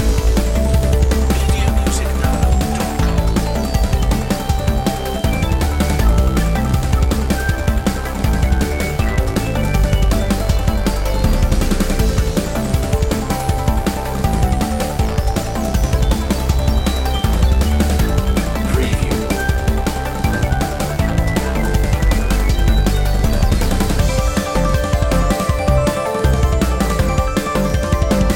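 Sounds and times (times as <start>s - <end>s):
synth music without lead synth: 0.0s - 28.3s.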